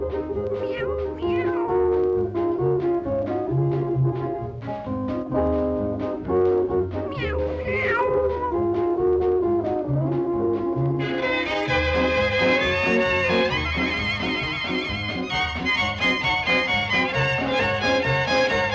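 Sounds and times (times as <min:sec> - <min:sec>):
loud steady band music with a driving bass rhythm: 0:00.0 - 0:18.7
voice imitating a cat meowing: 0:00.6 - 0:01.9, 0:07.1 - 0:08.6.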